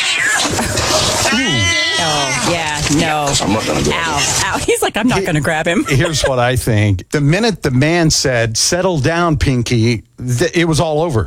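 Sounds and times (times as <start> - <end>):
agitated cat yowling: 0.0 - 3.2
speech: 3.3 - 11.2
laughter: 3.6 - 6.6.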